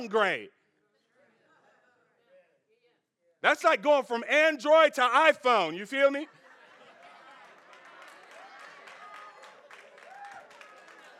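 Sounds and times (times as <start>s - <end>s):
speech: 0.0s - 0.6s, 3.4s - 6.4s
brief laugh or cheer: 6.0s - 11.1s
audience clapping: 6.8s - 11.1s.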